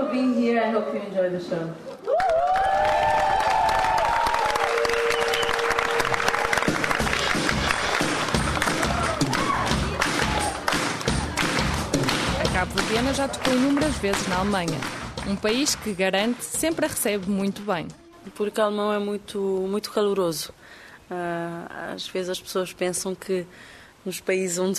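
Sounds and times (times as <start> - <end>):
speech: 0.2 - 1.9, 13.0 - 24.7
concert audience applause: 2.0 - 16.4.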